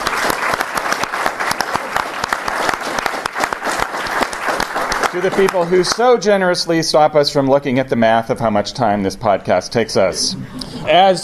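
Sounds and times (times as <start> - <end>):
audience applause: 0.0 - 6.2
speech: 5.2 - 11.2.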